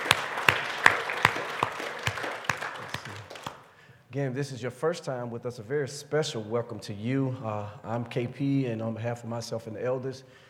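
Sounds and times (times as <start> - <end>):
audience clapping in a steady rhythm: 0.0 - 3.7
speech: 4.2 - 10.4.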